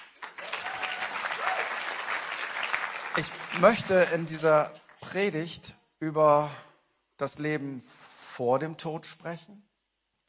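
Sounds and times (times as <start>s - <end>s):
audience applause: 0.0s - 5.0s
speech: 3.2s - 9.7s.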